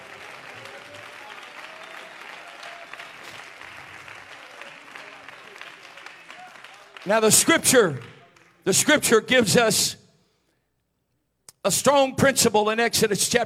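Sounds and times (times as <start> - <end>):
audience clapping: 0.0 - 9.1
speech: 7.0 - 8.1, 8.7 - 10.0, 11.6 - 13.4.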